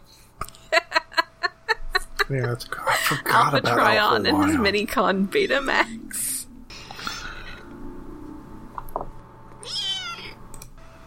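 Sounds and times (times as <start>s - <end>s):
laughter: 0.4s - 4.7s
speech: 2.3s - 6.3s
snowshoe cat meowing fussily: 9.6s - 10.4s.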